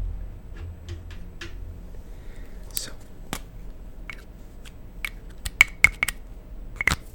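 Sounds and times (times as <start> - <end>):
low steady hum: 0.0 - 7.1
highlighter handled close to the microphone, clicking and tapping: 2.7 - 6.2, 6.8 - 7.1.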